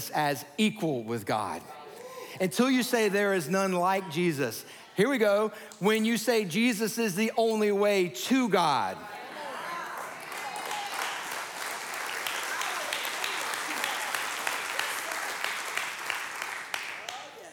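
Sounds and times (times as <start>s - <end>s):
speech: 0.0s - 1.8s, 2.4s - 9.2s
people clapping: 9.6s - 17.5s.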